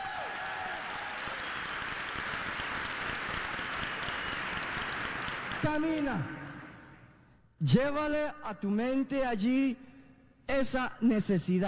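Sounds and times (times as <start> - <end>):
audience applauding: 0.0 - 7.0
speech: 5.6 - 6.4, 7.6 - 9.8, 10.5 - 11.6.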